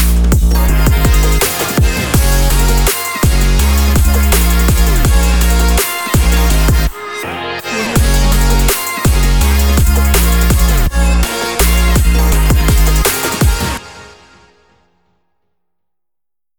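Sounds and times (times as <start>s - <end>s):
trendy modern video advertising music: 0.0s - 14.0s.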